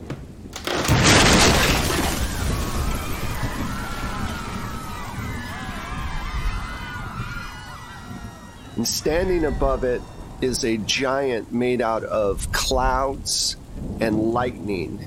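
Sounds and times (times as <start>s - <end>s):
roof being ripped off: 0.6s - 4.4s
crash: 0.6s - 6.1s
speech: 8.8s - 15.0s.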